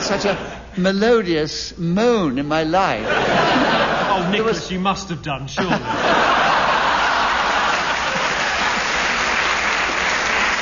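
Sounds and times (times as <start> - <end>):
laughter: 0.0 - 0.7, 2.9 - 4.7, 5.6 - 9.4
speech: 0.1 - 6.3
audience clapping: 6.6 - 10.6.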